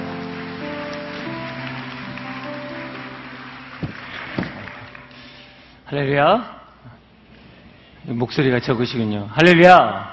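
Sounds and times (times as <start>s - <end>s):
audience applause: 0.0s - 5.4s
speech: 5.9s - 6.6s, 8.1s - 10.1s.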